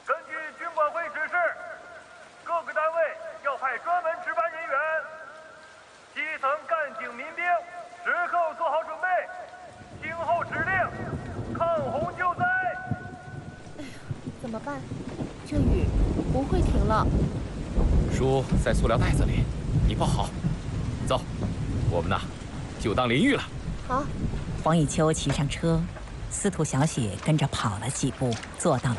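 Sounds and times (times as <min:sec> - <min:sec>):
heavy rain falling: 0:00.0 - 0:28.9
thunderclap: 0:09.6 - 0:28.9
speech: 0:18.2 - 0:20.4, 0:21.1 - 0:28.9.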